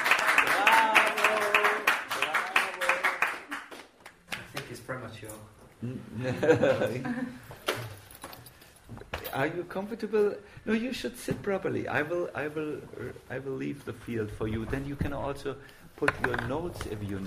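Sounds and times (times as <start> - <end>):
audience applause: 0.0 - 4.2
speech: 5.2 - 7.6, 9.4 - 17.2
laughter: 5.8 - 7.5.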